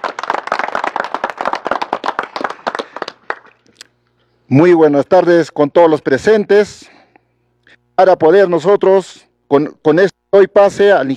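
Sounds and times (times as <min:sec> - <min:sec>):
crowd clapping: 0:00.0 - 0:03.7
speech: 0:04.5 - 0:07.0, 0:08.0 - 0:11.1.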